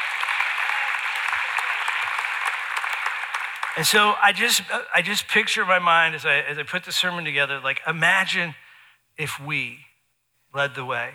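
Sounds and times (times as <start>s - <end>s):
audience applause: 0.0s - 4.2s
speech: 3.8s - 8.6s, 9.2s - 9.9s, 10.5s - 11.1s.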